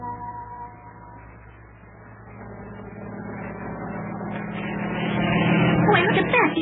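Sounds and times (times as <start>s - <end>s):
helicopter flying over the ocean: 1.4s - 6.6s.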